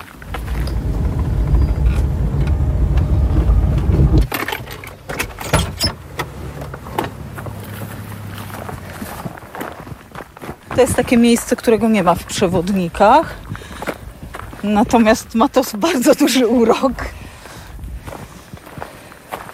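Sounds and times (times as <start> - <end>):
getting into a car: 0.0 - 9.8
speech: 10.8 - 13.5, 14.6 - 17.2.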